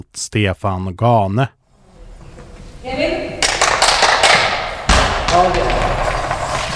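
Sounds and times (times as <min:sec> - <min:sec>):
speech: 0:00.1 - 0:01.6, 0:05.3 - 0:05.9
goalball rolling over gym floor: 0:01.7 - 0:06.7
bell inside goalball rattling: 0:04.1 - 0:06.7.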